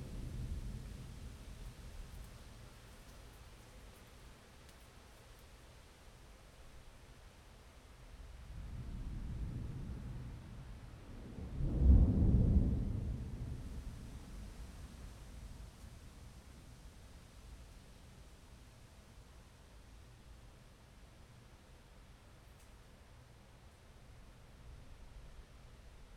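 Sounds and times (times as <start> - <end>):
thunderstorm: 0.0 - 2.6, 8.4 - 16.5.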